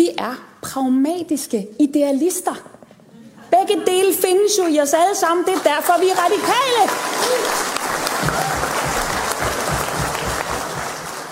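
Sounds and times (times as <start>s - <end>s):
speech: 0.0s - 2.8s, 3.5s - 7.7s
big applause from audience: 6.0s - 11.3s
people laughing: 7.2s - 11.3s.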